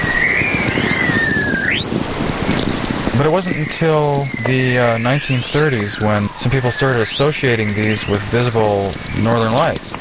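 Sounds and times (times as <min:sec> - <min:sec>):
natural radio whistling tones: 0:00.0 - 0:09.9
speech: 0:03.2 - 0:09.9.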